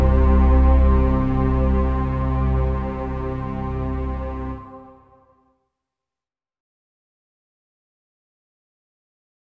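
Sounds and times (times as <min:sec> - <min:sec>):
piano: 0:00.0 - 0:05.2.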